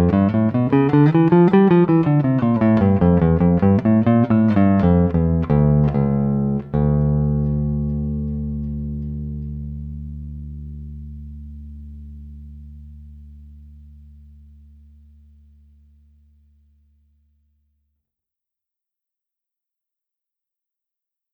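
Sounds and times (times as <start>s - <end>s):
solo bass guitar pieces: 0.0s - 16.6s.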